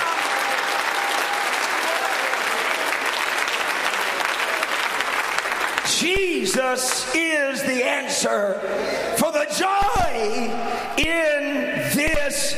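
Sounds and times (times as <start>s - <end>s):
audience clapping: 0.0s - 7.2s
speech: 6.4s - 12.5s.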